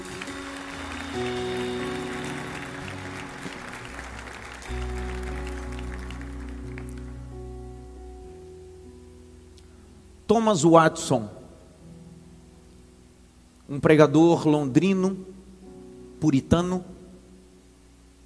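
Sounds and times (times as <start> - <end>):
audience applause: 0.0 - 7.4
speech: 1.2 - 1.4, 10.3 - 11.4, 13.7 - 15.3, 16.2 - 16.9.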